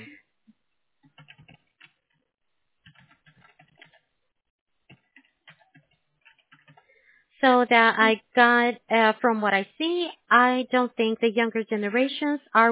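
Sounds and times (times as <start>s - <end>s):
typing an answer on a computer keyboard: 1.0s - 2.2s, 2.8s - 4.1s, 4.9s - 6.9s
speech: 7.4s - 12.7s.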